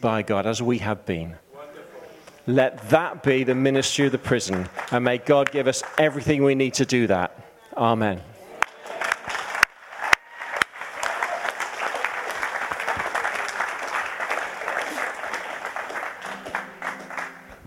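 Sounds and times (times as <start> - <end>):
speech: 0.0 - 1.4, 2.4 - 8.3
audience applause: 3.0 - 6.6, 8.5 - 17.6.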